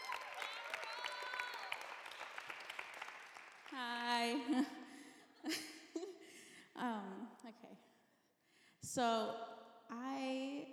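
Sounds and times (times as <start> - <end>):
whoops and cheers: 0.0 - 2.5
audience clapping: 0.0 - 4.2
speech: 3.7 - 4.8, 5.4 - 5.7, 7.5 - 8.0, 8.8 - 10.7.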